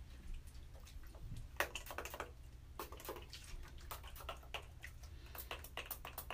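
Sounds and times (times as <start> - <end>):
someone taking a shower: 0.2 - 6.3.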